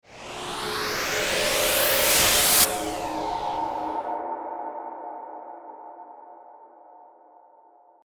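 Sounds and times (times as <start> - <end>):
synthetic swell: 0.0 - 4.2.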